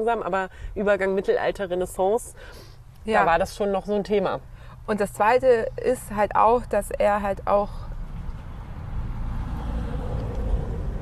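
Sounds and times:
speech: 0.0 - 7.9
postal delivery vehicle driving past: 7.8 - 11.0.

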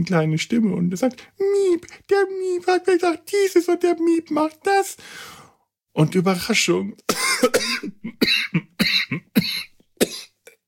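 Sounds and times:
speech: 0.0 - 5.4, 6.0 - 9.7
person coughing after choking: 7.1 - 10.6.

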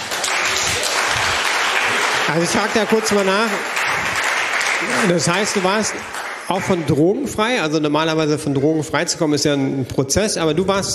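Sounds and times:
audience applause: 0.0 - 7.2
speech: 2.3 - 4.1, 4.8 - 10.9.

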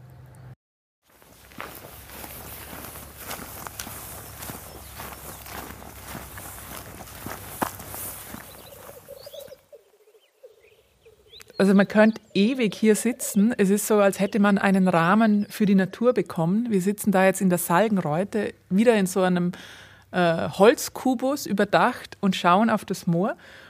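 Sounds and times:
footsteps walking outdoors toward a moor: 1.0 - 9.7
faint bird chirps: 3.6 - 15.6
speech: 11.6 - 23.6.

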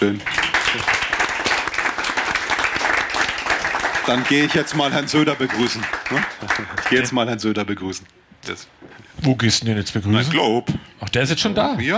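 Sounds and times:
speech: 0.0 - 0.9, 4.1 - 11.9
live audience applause: 0.0 - 7.4.

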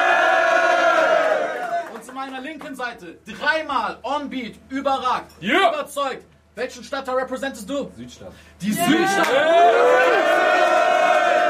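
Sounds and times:
crowd cheering and shouting: 0.0 - 2.0, 8.8 - 11.4
speech: 2.3 - 10.8.

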